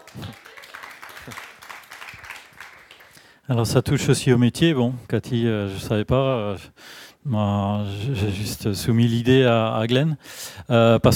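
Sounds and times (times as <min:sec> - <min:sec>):
audience applause: 0:00.0 - 0:03.4
speech: 0:03.5 - 0:11.1.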